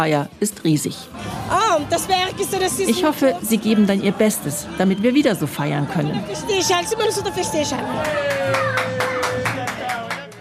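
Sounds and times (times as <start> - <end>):
speech: 0.0 - 9.0
voices calling and chattering: 0.0 - 10.3
crowd clapping in a steady rhythmic beat: 7.9 - 10.3.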